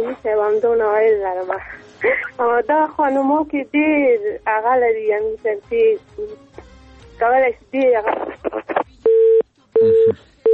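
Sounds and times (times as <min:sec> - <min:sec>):
speech: 0:00.0 - 0:06.6, 0:07.2 - 0:10.3
phone line beeps after a call is cut off: 0:09.0 - 0:10.5.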